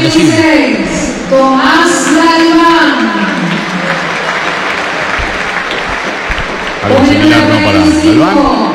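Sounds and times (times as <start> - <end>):
speech: 0.1 - 3.6, 6.8 - 8.7
scattered applause from large stadium crowd: 3.3 - 7.8.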